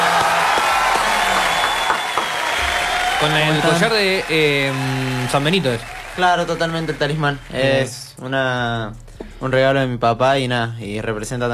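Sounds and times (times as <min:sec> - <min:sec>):
audience clapping: 0:00.0 - 0:08.2
speech: 0:03.2 - 0:11.5.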